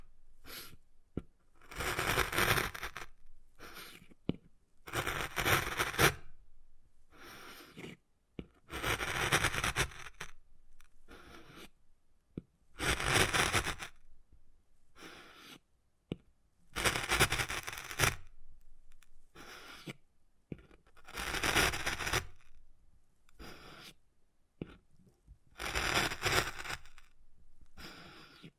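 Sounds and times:
wood carving scraping strokes: 1.6s - 4.2s, 4.8s - 6.3s, 7.2s - 8.0s, 8.7s - 11.7s, 12.8s - 14.0s, 15.0s - 15.6s, 16.7s - 18.3s, 18.9s - 20.0s, 20.6s - 22.6s, 23.3s - 24.0s, 25.5s - 28.5s.

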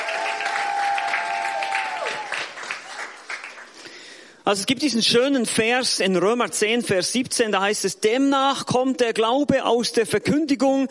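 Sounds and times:
audience applause: 0.0s - 3.8s
speech: 4.5s - 10.8s.

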